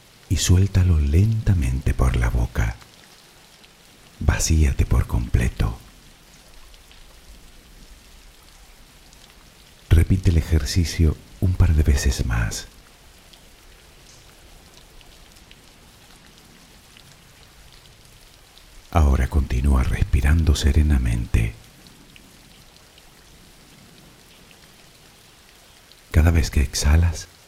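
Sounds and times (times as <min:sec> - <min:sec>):
rain falling: 0:00.0 - 0:27.4
speech: 0:00.3 - 0:02.8, 0:04.2 - 0:05.8, 0:10.1 - 0:12.8, 0:18.9 - 0:21.6, 0:26.2 - 0:27.3.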